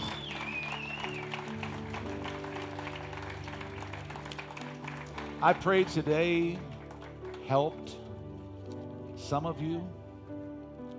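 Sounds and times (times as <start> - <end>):
high whistle-like tone: 0.0 - 1.3
crowd clapping: 0.0 - 8.1
organ or keyboard chords: 0.0 - 10.9
speech: 5.4 - 6.7, 7.5 - 8.0, 9.3 - 10.0.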